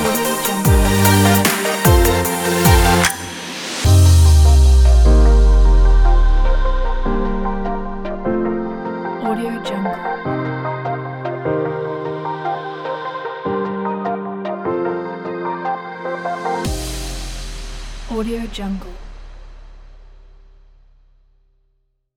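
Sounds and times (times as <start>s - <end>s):
future bass music: 0.0s - 9.7s, 16.5s - 19.9s.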